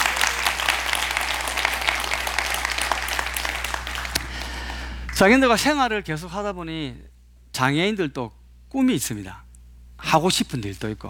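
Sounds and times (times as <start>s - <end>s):
audience applause: 0.0s - 5.1s
speech: 5.2s - 9.4s, 10.0s - 11.0s.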